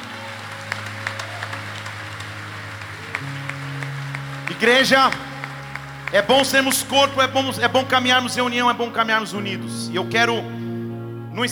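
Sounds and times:
audience applause: 0.0s - 7.2s
speech: 4.6s - 5.3s, 6.1s - 10.6s, 11.4s - 11.5s.

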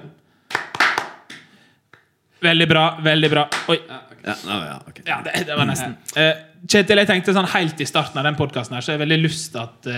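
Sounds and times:
scattered hand clapping: 0.5s - 2.1s, 3.5s - 3.8s
speech: 2.4s - 9.9s.

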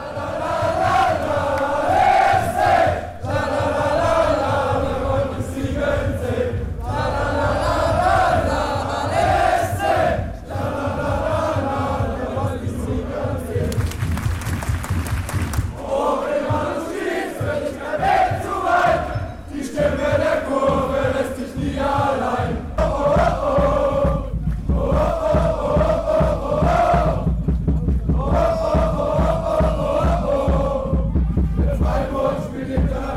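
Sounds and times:
large crowd of football fans singing during march: 0.0s - 14.4s, 15.4s - 33.1s.

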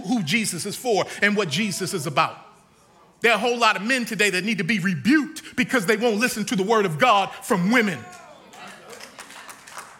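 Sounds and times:
speech: 0.1s - 2.5s, 3.2s - 8.2s
scattered audience clapping: 8.0s - 9.9s.

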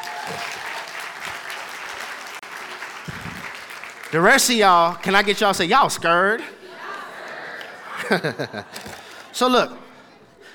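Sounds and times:
audience applauding for volunteers: 0.0s - 5.3s
speech: 0.3s - 0.6s, 4.1s - 6.6s, 8.1s - 8.8s, 9.4s - 9.8s
laughter: 6.3s - 9.4s.

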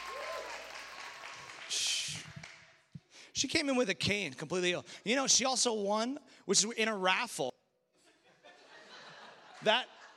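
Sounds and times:
audience clapping hands: 0.0s - 2.9s
speech: 3.4s - 7.5s, 9.6s - 10.0s
laughter: 8.0s - 10.1s.

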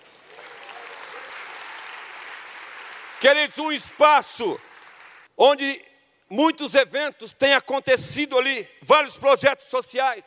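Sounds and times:
audience applause: 0.0s - 5.3s
speech: 3.2s - 4.7s, 5.4s - 10.2s.

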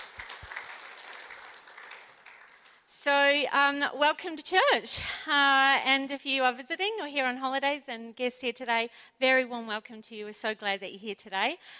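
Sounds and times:
audience applause: 0.0s - 2.8s
speech: 3.1s - 11.7s.

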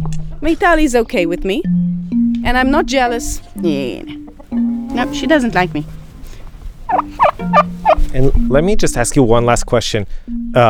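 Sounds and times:
speech: 0.4s - 1.8s, 2.4s - 4.2s, 5.0s - 6.0s, 6.9s - 10.6s
turkey yelping: 4.2s - 8.2s.

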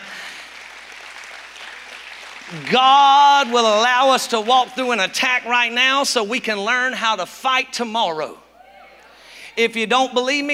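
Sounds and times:
audience applause: 0.0s - 4.8s
speech: 2.5s - 8.4s, 9.6s - 10.5s.

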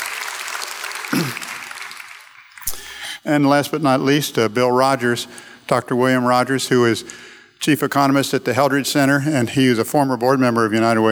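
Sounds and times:
audience applause: 0.0s - 3.0s
speech: 3.2s - 11.1s.

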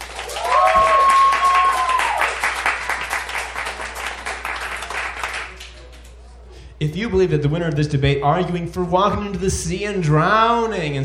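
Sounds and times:
audience applause: 0.0s - 6.2s
speech: 6.8s - 11.0s.

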